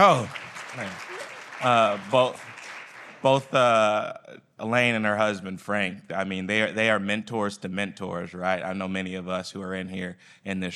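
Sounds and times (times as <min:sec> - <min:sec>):
speech: 0:00.0 - 0:02.5, 0:03.2 - 0:10.7
audience applauding: 0:00.0 - 0:03.6.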